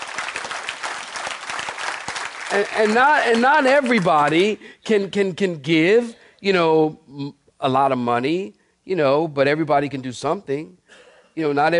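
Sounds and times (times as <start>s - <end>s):
audience clapping hands: 0.0s - 4.6s
speech: 2.5s - 11.7s.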